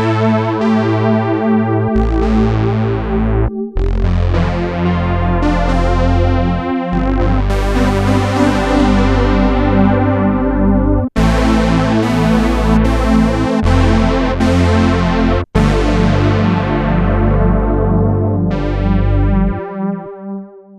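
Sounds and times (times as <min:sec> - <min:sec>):
synthesizer sounds: 0:00.2 - 0:20.2.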